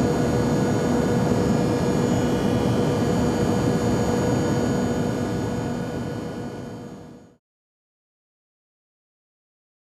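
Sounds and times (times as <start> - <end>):
airliner cabin ambience: 0.0 - 7.4.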